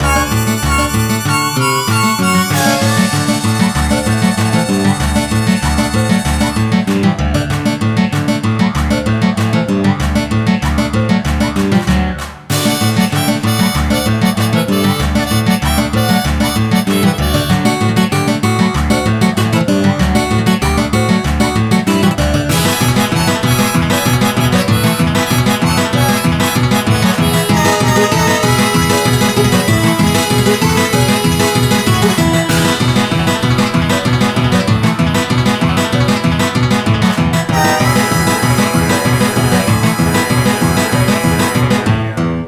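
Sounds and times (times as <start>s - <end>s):
music: 0.0s - 42.4s.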